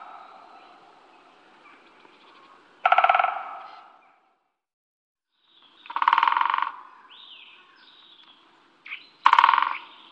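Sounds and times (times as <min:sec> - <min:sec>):
great spotted woodpecker calling sharp kik notes: 0:01.6 - 0:04.3, 0:05.8 - 0:10.1.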